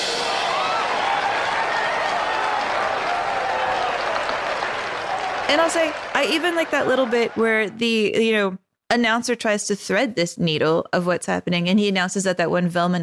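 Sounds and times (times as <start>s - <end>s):
large crowd applause: 0.1s - 8.1s
speech: 5.5s - 13.0s.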